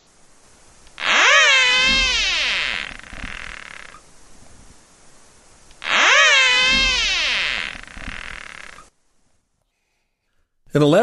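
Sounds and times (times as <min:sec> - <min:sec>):
caterpillar whistling: 0:01.0 - 0:04.0, 0:05.8 - 0:08.8.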